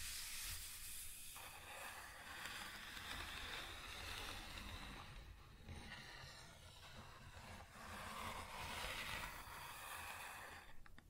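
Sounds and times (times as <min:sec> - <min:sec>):
wood scratching: 0:00.0 - 0:10.7.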